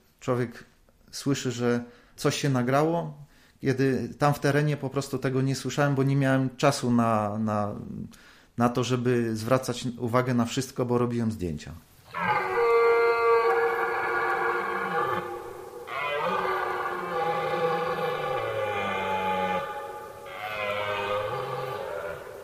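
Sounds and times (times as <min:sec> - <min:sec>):
speech: 0:00.2 - 0:12.2
red deer stags bellowing during rut: 0:12.1 - 0:22.4.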